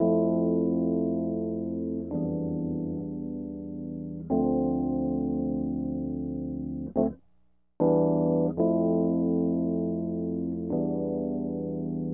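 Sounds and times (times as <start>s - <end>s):
Rhodes electric piano in D minor hip hop and RnB style: 0.0s - 7.2s, 7.8s - 12.1s.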